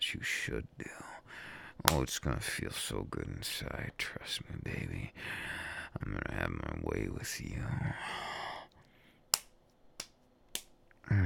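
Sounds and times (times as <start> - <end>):
speech: 0.2 - 1.1, 1.8 - 8.4, 11.1 - 11.2
sharp crisp slaps against skin: 9.3 - 10.8
short breathy vocal sound: 11.0 - 11.2.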